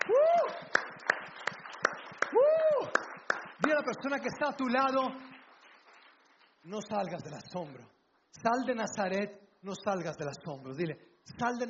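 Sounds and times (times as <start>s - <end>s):
audience applause: 0.0s - 6.6s
speech: 3.7s - 5.3s, 6.6s - 11.6s.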